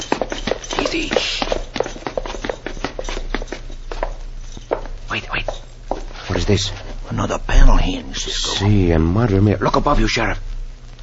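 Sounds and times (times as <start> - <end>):
footsteps climbing stairs in a hidden passageway in a radio drama: 0.0 - 7.0
speech: 0.9 - 1.5, 6.5 - 10.5.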